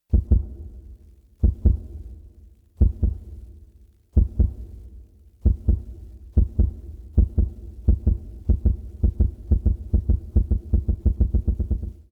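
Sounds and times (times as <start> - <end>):
heartbeat: 0.1 - 0.6, 1.4 - 1.9, 2.8 - 3.3, 4.2 - 4.6, 5.4 - 12.0.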